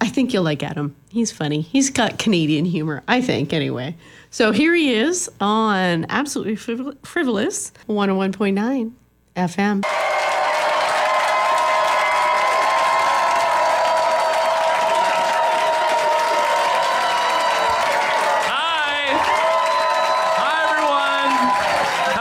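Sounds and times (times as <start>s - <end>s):
speech: 0.1s - 10.0s
large crowd applauding and cheering: 9.8s - 22.1s
rising whoops: 9.8s - 22.1s.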